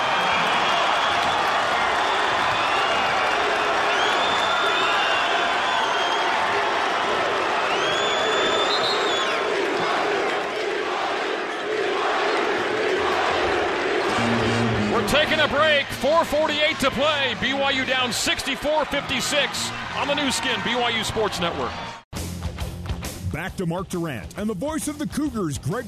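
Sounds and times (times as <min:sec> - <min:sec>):
basketball arena crowd cheering during timeout: 0:00.0 - 0:22.1
speech: 0:15.3 - 0:22.0, 0:23.4 - 0:25.8.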